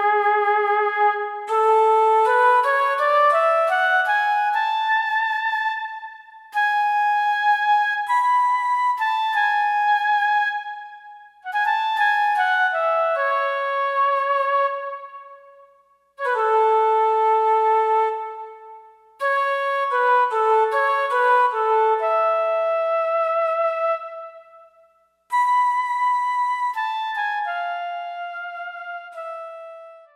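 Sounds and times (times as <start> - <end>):
small hall reverb from a Lexicon MPX 1: 0.0 - 30.1.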